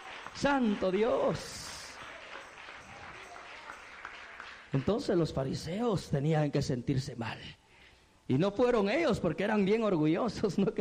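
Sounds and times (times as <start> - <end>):
congregation clapping during a Spanish-language church service: 0.0 - 5.8
speech: 0.4 - 1.6, 4.7 - 7.6, 8.3 - 10.8.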